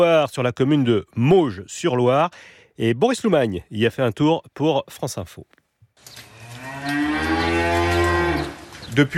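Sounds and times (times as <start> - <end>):
speech: 0.0 - 7.4, 9.0 - 9.1
faint barn ambience: 5.9 - 9.1
dairy cow mooing in a farm shed: 6.3 - 8.6.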